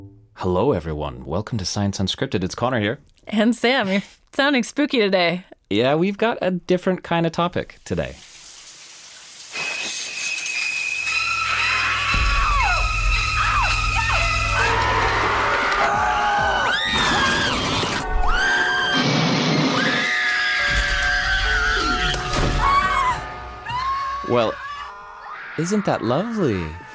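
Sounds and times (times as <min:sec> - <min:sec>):
speech: 0:00.4 - 0:08.3, 0:24.3 - 0:24.6, 0:25.6 - 0:26.9
screams of people dying in horror and other films: 0:10.3 - 0:26.9.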